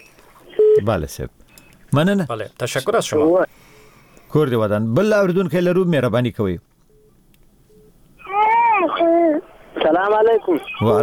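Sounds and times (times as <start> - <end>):
speech: 0.8 - 3.7, 4.3 - 6.7, 10.0 - 11.0
child's voice behind a radio phone-in call: 8.2 - 9.5.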